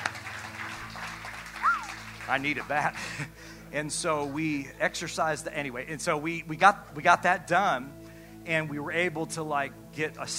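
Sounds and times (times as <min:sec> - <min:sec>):
clapping: 0:00.0 - 0:03.2
laughter: 0:01.7 - 0:03.4
speech: 0:02.3 - 0:10.3.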